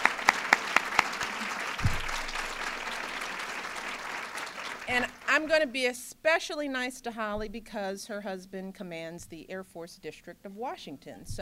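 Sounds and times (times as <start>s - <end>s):
audience applause: 0.0s - 5.6s
speech: 4.9s - 11.4s.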